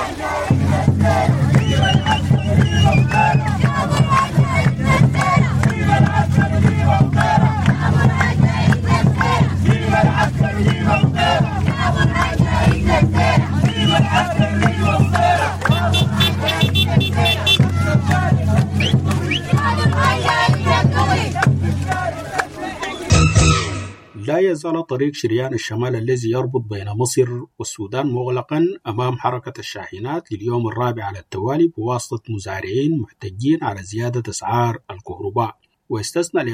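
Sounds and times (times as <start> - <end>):
protest march crowd chanting slogans for civilian rule in Sudan: 0.0 - 24.4
speech: 24.6 - 36.5.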